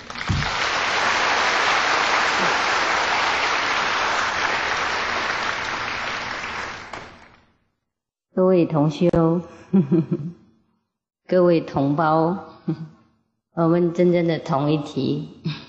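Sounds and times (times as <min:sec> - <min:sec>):
warm applause from an audience: 0:00.0 - 0:07.3
speech: 0:08.4 - 0:10.4, 0:11.3 - 0:13.0, 0:13.6 - 0:15.6.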